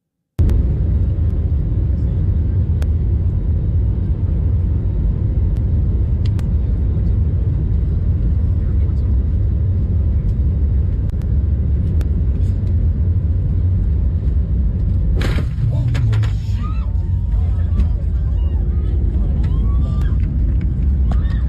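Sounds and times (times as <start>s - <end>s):
jet engine rumble in a jet cabin: 0.4s - 21.4s
sharp impact smack: 15.2s - 16.4s
passengers crying and screaming: 15.6s - 21.4s.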